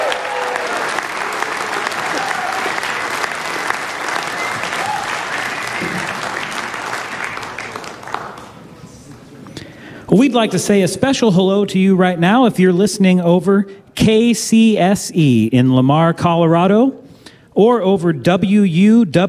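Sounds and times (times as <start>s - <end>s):
audience applause for a performer: 0.0s - 8.8s
speech: 10.1s - 17.0s, 17.6s - 19.2s.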